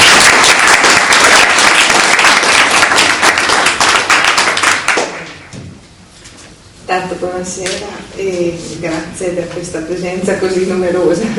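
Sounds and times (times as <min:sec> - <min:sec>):
audience applause: 0:00.0 - 0:05.4
speech: 0:06.9 - 0:11.3.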